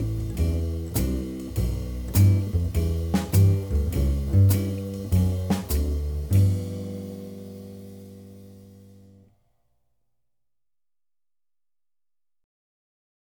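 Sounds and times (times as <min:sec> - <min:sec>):
blues in G: 0:00.0 - 0:09.3.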